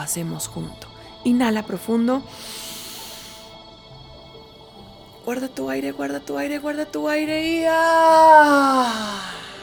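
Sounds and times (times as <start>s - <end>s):
speech: 0.0s - 2.8s, 5.3s - 9.4s
group letting out a releasing scream in a guided breathing exercise: 7.8s - 9.2s.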